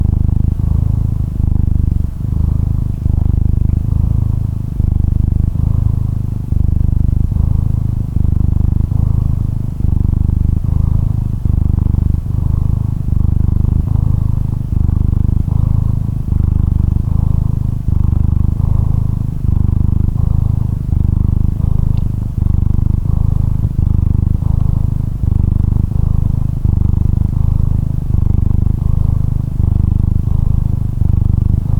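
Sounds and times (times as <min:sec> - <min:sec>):
domestic cat purring: 0:00.0 - 0:31.7.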